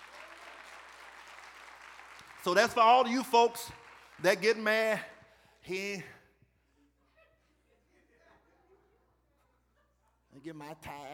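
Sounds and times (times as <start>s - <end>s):
audience clapping hands: 0.0s - 5.3s
speech: 2.4s - 6.2s, 10.4s - 11.1s.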